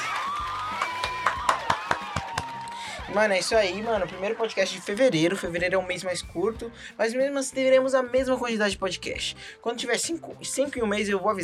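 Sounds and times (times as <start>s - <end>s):
applause: 0.0s - 5.2s
small crowd whooping and cheering: 0.0s - 5.6s
speech: 3.1s - 11.4s.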